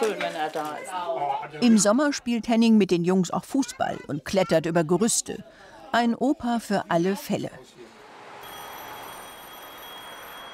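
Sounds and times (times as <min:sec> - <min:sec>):
speech: 0:00.5 - 0:07.8
telephone ringing: 0:08.4 - 0:10.5.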